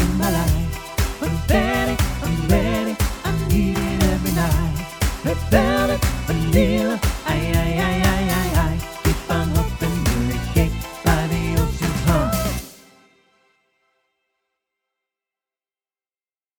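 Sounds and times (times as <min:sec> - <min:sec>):
vocal mix: 0:00.0 - 0:12.8.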